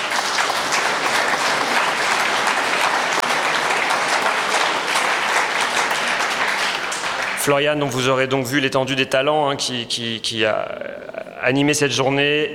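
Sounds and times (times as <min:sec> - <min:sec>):
crowd applauding: 0:00.0 - 0:08.2
speech: 0:07.4 - 0:12.5.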